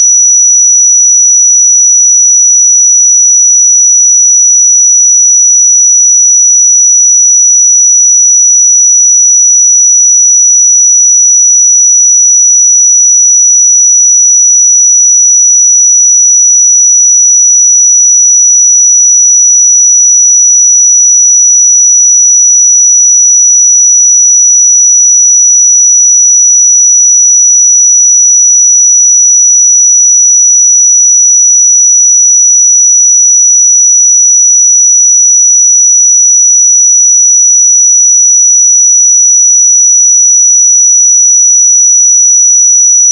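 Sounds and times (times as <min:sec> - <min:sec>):
5882 Hz pure sine tone: 0:00.0 - 0:43.1.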